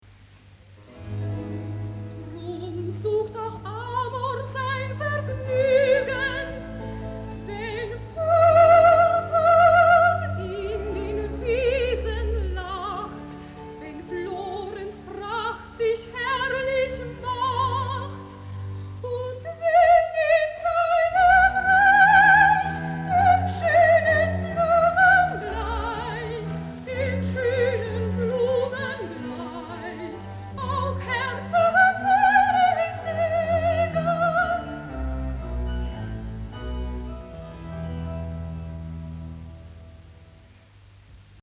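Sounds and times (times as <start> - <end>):
recitative singing: 2.3 - 35.0.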